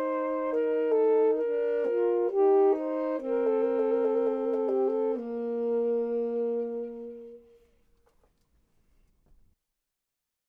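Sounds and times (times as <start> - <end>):
saxophone: 0.0 - 8.1
clarinet: 0.0 - 8.2.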